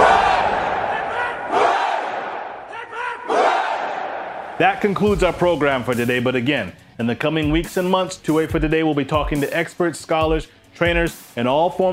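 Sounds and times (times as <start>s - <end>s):
crowd cheering: 0.0s - 4.9s
speech: 4.6s - 11.9s.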